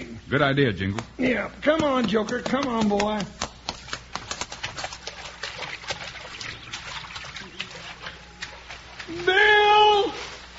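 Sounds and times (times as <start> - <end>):
speech: 0.3 - 3.5
hoof plops in a shallow river: 1.8 - 9.2
horse splashing across a shallow river: 4.3 - 10.5.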